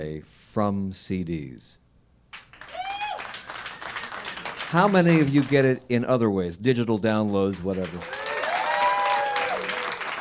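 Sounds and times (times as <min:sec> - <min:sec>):
speech: 0:00.0 - 0:01.8, 0:04.7 - 0:08.2
audience applause: 0:02.5 - 0:05.7, 0:07.4 - 0:10.2
whoop or whistle: 0:02.7 - 0:03.3, 0:08.1 - 0:09.8.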